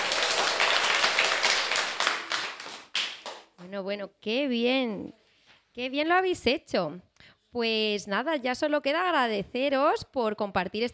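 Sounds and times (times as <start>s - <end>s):
room full of people applauding: 0.0s - 3.6s
speech: 3.7s - 5.2s, 5.8s - 10.9s.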